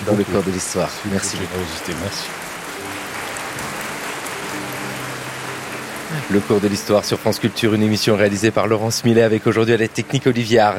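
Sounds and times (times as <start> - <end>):
speech: 0.0 - 2.5, 6.2 - 10.7
audience applause: 0.0 - 8.4.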